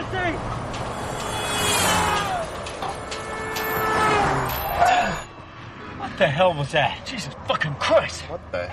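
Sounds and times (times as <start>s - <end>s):
car engine racing with a stuck gas pedal from a broken throttle return spring: 0.1s - 5.0s
speech: 6.2s - 8.7s.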